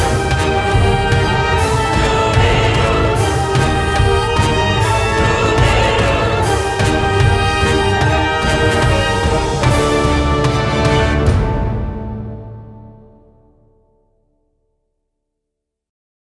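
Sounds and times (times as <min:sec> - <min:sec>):
battle scene sounds: 0:00.0 - 0:12.7.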